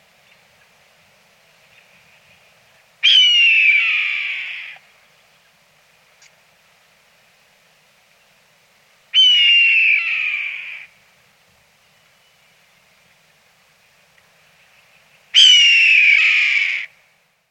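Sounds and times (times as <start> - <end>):
bird grating calls: 3.0 - 4.8, 9.2 - 10.9, 15.4 - 16.9.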